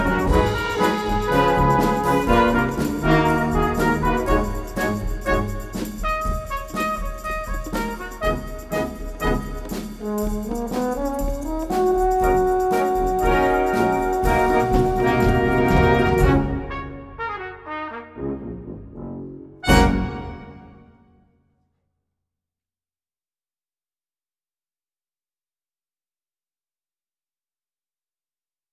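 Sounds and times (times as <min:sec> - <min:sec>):
jazz music: 0:00.0 - 0:21.0.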